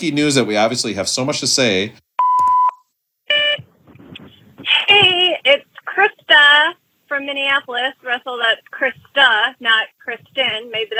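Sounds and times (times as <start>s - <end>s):
speech: 0.0s - 2.0s, 5.5s - 10.9s
voicemail beep: 2.2s - 3.6s.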